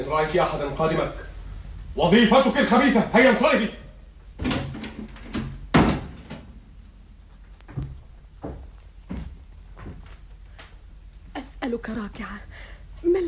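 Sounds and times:
speech: 0:00.0 - 0:01.3, 0:02.0 - 0:03.8, 0:11.8 - 0:13.2
door closing: 0:04.4 - 0:06.6.

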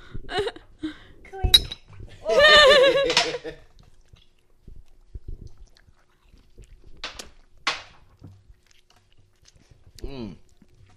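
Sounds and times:
glasses clinking together in a toast: 0:01.5 - 0:02.0
laughter: 0:02.2 - 0:03.6.

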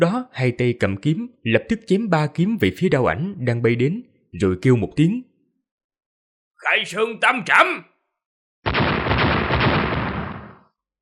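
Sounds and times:
speech: 0:00.0 - 0:05.3, 0:06.6 - 0:07.9
loud explosion blasts: 0:08.7 - 0:10.6.

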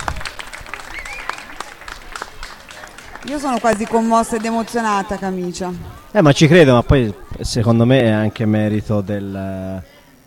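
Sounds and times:
audience applause at a live event: 0:00.0 - 0:05.7
voices calling out: 0:00.8 - 0:10.2
speech: 0:03.2 - 0:09.9.

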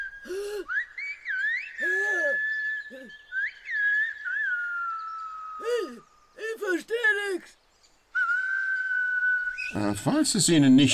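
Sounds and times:
whistled language conversation: 0:00.0 - 0:06.6, 0:08.1 - 0:10.2
speech: 0:09.9 - 0:10.9.

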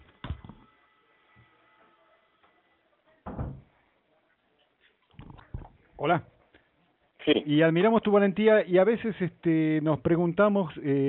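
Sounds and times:
door swinging shut with a dull solid thud: 0:03.2 - 0:03.7
speech: 0:06.0 - 0:06.3, 0:07.2 - 0:11.0.

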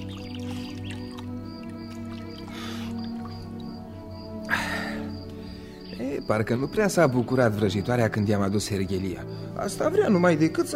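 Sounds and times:
person gulping water: 0:00.1 - 0:03.7
speech: 0:06.2 - 0:10.7.

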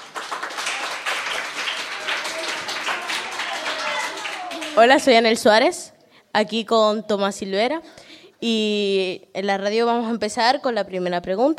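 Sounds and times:
crowd applauding: 0:00.0 - 0:05.1
speech: 0:04.8 - 0:11.5.

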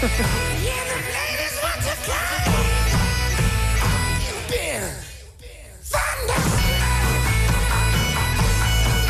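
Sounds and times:
bagpipe rendition of a rock song: 0:00.0 - 0:04.7, 0:06.2 - 0:09.0.

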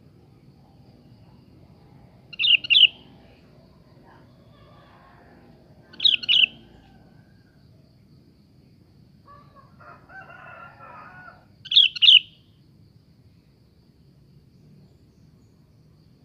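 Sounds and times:
sooty-headed bulbul song phrases: 0:02.3 - 0:07.0, 0:11.6 - 0:12.4.

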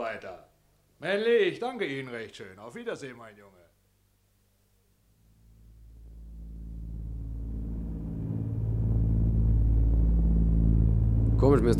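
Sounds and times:
speech: 0:00.1 - 0:03.6, 0:11.4 - 0:11.7
airplane engines droning in flight: 0:05.7 - 0:11.7.

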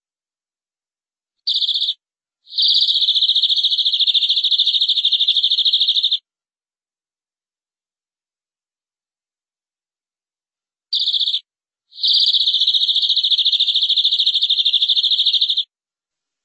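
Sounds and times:
canary song trill: 0:01.5 - 0:06.2, 0:10.9 - 0:15.7.

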